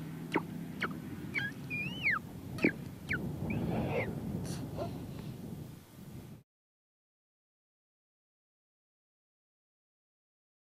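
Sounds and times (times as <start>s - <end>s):
Weddell seals calling above water: 0.0s - 5.4s.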